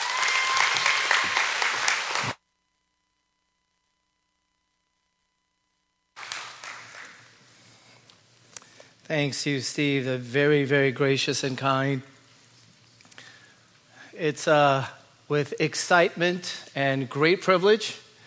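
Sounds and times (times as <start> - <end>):
church congregation applauding to welcome a guest speaker: 0.0 - 2.4, 6.2 - 7.7
speech: 9.1 - 12.1, 14.2 - 18.0.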